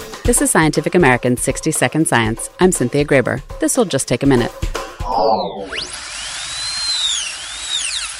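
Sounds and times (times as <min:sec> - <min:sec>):
speech: 0:00.3 - 0:06.0
dentist's drill whirring: 0:05.4 - 0:08.1.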